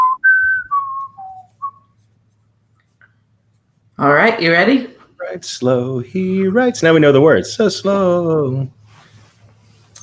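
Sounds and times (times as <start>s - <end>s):
whistled quiz show think music: 0.0s - 2.0s
speech: 4.0s - 8.8s.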